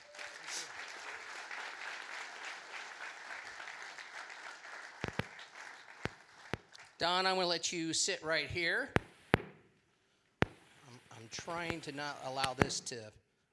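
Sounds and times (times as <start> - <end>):
audience applause: 0.0 - 7.0
speech: 7.0 - 9.0, 11.4 - 13.2.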